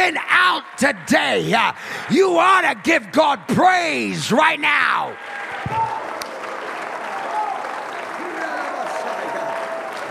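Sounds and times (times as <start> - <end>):
speech: 0.1 - 5.8
audience clapping hands: 0.8 - 10.0.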